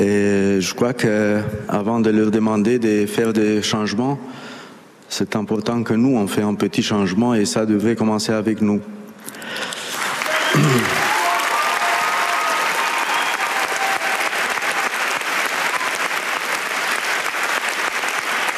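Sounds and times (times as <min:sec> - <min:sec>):
speech: 0:00.0 - 0:04.5, 0:05.1 - 0:09.7, 0:10.6 - 0:11.0
audience applause for Cristian Mungiu: 0:09.7 - 0:18.5.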